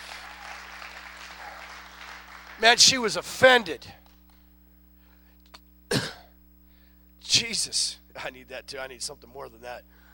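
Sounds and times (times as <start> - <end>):
audience hand clapping: 0.0 - 4.4
speech: 2.6 - 4.0, 7.4 - 10.0.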